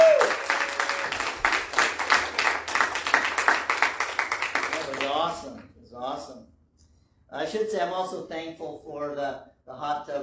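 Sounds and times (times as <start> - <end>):
audience applause welcoming a new member at a church gathering: 0.0 - 5.6
speech: 7.5 - 10.2.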